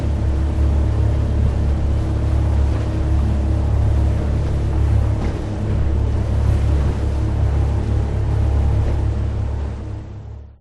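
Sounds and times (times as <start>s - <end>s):
Caribbean waves splashing against a boat: 0.0s - 10.0s
boat motor hum: 0.0s - 10.5s.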